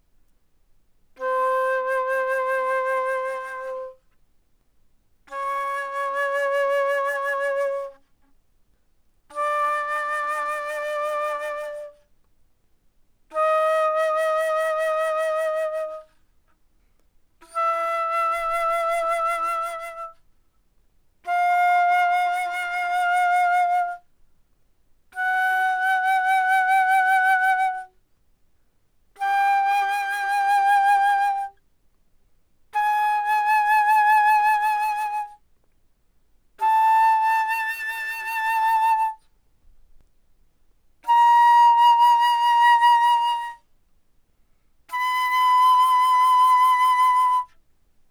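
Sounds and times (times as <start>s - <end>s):
alto flute playing fortissimo from C5 to B5: 1.2s - 4.0s, 5.3s - 8.1s, 9.3s - 12.0s, 13.3s - 16.2s, 17.4s - 20.2s, 21.2s - 24.1s, 25.1s - 27.9s, 29.2s - 31.6s, 32.8s - 35.4s, 36.6s - 39.3s, 41.0s - 43.7s, 44.9s - 47.6s.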